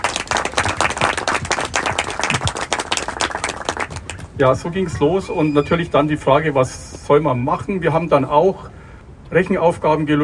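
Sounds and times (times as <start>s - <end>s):
audience applause: 0.0s - 4.4s
speech: 4.4s - 10.2s.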